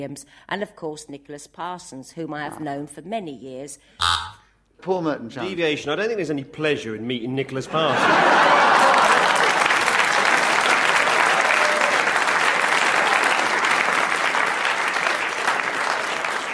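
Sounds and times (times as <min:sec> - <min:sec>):
speech: 0:00.0 - 0:09.0
laughter: 0:07.7 - 0:09.7
audience clapping: 0:08.4 - 0:16.5.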